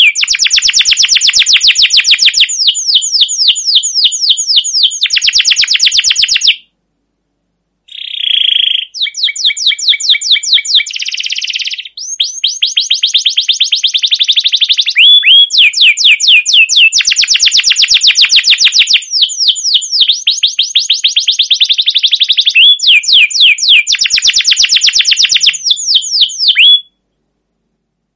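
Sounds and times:
canary trilling: 0:00.0 - 0:06.7, 0:07.9 - 0:27.0.

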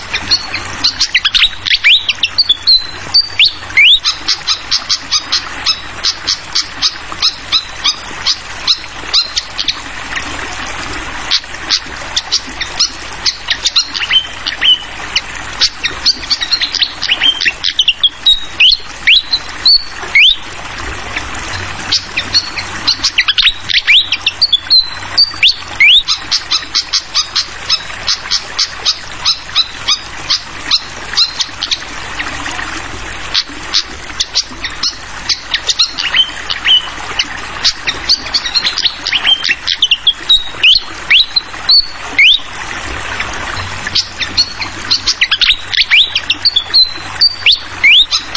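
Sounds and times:
fantail singing: 0:00.0 - 0:09.8, 0:12.2 - 0:14.9, 0:15.6 - 0:20.4, 0:21.6 - 0:31.8, 0:37.6 - 0:42.5, 0:43.6 - 0:48.3
water gurgling: 0:00.0 - 0:48.3.

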